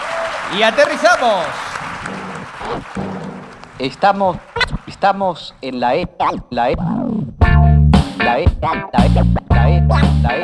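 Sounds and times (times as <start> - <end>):
audience applause: 0.0 - 5.2
speech: 0.5 - 1.7, 3.8 - 7.2, 8.2 - 10.4.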